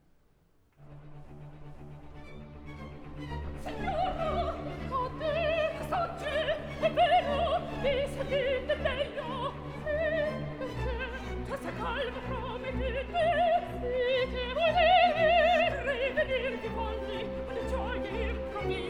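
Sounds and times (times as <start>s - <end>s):
opera duet: 2.9s - 18.8s.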